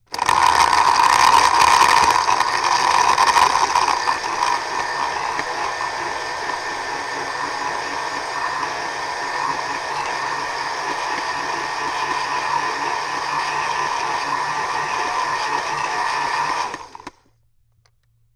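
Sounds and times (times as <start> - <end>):
blender making ice cream: 0.0 - 17.2.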